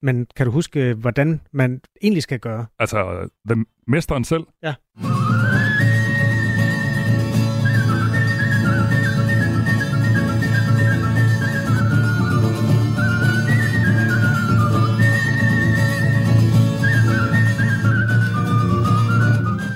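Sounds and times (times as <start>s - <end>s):
speech: 0.0s - 5.2s
person whistling a melody with special technique: 5.0s - 19.7s.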